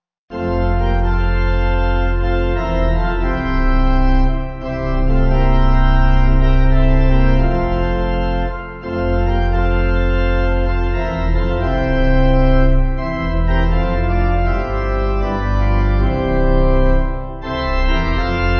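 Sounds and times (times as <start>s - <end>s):
pipe organ: 0.3s - 18.5s.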